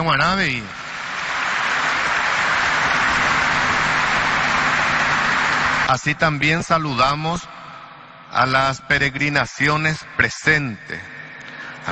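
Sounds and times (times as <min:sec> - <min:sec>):
speech: 0:00.0 - 0:00.8, 0:05.9 - 0:07.5, 0:08.3 - 0:11.1
crowd applauding: 0:00.0 - 0:06.5.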